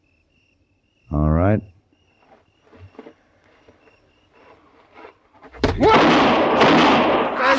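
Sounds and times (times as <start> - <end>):
speech: 1.1 - 1.7
derringer pistol gunshot in a radio drama: 5.7 - 7.5.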